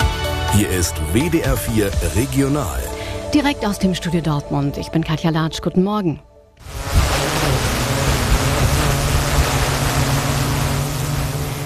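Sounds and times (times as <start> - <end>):
speech: 0.6 - 6.8
autonomous drone motors buzzing: 6.6 - 11.6
drone rotor wash rushing: 6.6 - 11.6.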